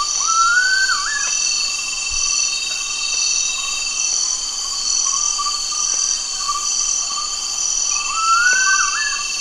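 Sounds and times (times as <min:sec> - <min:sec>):
Gould's frogmouth whistling at Danum in Borneo: 0:00.2 - 0:01.4, 0:08.0 - 0:09.3.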